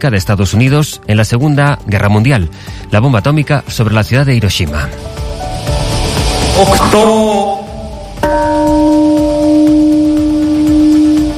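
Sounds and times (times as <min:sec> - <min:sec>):
speech: 0:00.0 - 0:05.8, 0:06.6 - 0:07.6
peace bell ringing at Hiroshima memorial: 0:07.6 - 0:11.3.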